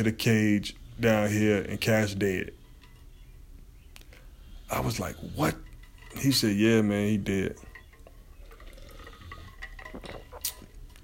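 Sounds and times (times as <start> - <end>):
speech: 0.0 - 2.6, 4.7 - 7.7
person taking a sip of drink: 8.0 - 10.8.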